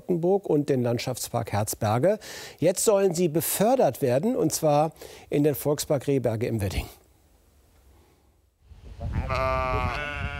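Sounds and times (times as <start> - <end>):
speech: 0.1 - 7.0
sheep bleating in a park: 9.1 - 10.3.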